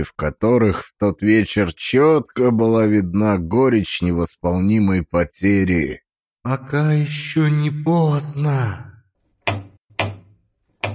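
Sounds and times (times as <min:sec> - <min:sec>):
speech: 0:00.0 - 0:08.9
door knocker knocking: 0:09.4 - 0:10.9.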